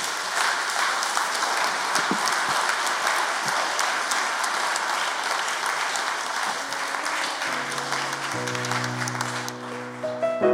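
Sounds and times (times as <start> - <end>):
audience applause: 0.0 - 10.4.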